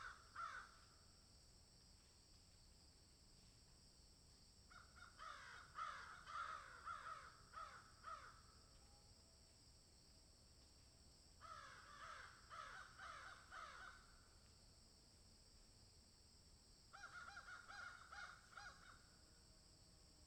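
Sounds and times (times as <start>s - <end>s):
crow giving hoarse downslurred caws: 0.0s - 0.8s, 4.7s - 8.5s, 11.4s - 14.2s, 16.9s - 19.1s.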